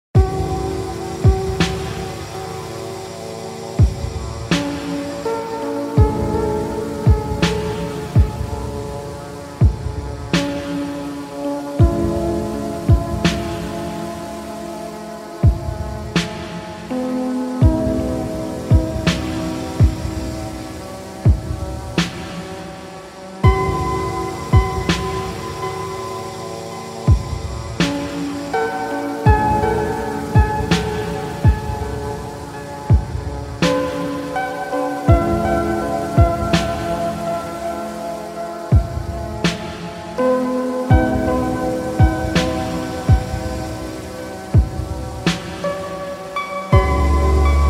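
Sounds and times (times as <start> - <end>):
rain: 0.2 - 47.6
vaporwave music: 0.2 - 47.6.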